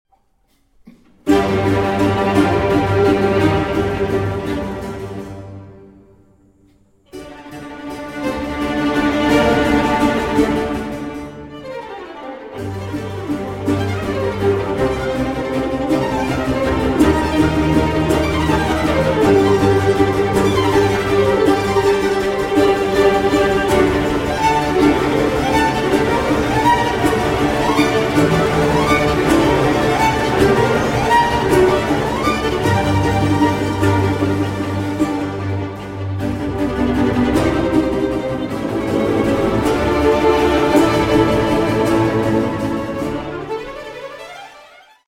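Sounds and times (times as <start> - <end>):
violin concerto presto in G minor: 1.2 - 6.2, 7.1 - 45.0.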